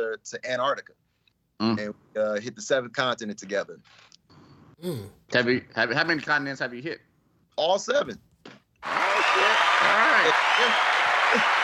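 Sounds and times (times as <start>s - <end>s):
speech: 0.2s - 1.0s, 1.6s - 4.2s, 4.8s - 8.6s, 9.8s - 11.6s
applause: 8.8s - 11.6s.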